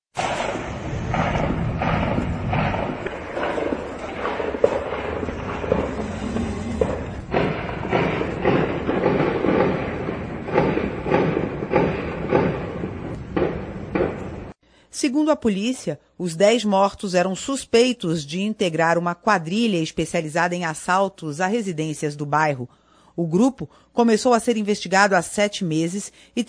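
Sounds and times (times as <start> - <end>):
gunfire in recorded phone footage: 0.2 - 14.5
steady rumbling noise: 0.2 - 14.6
speech: 15.0 - 26.4.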